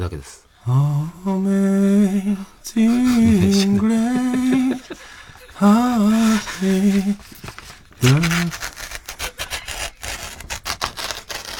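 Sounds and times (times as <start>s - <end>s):
speech: 0.0s - 5.0s, 5.6s - 7.3s, 8.0s - 8.7s
laughter: 2.8s - 7.0s
newspaper being torn up: 5.9s - 11.5s.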